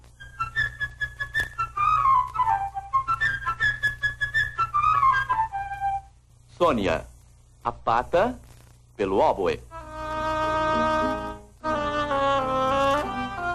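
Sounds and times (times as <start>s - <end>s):
low steady hum: 0.0s - 13.5s
flute playing a high-register melody: 0.1s - 6.2s, 9.7s - 13.5s
speech: 6.6s - 8.4s, 9.0s - 9.7s.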